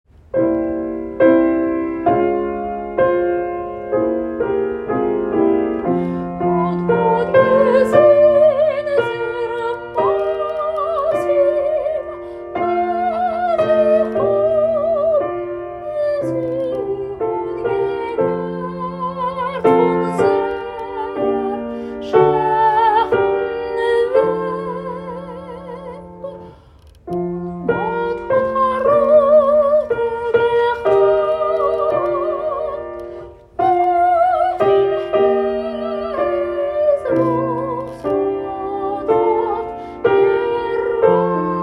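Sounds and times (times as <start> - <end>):
soprano singing: 0.4 - 41.6.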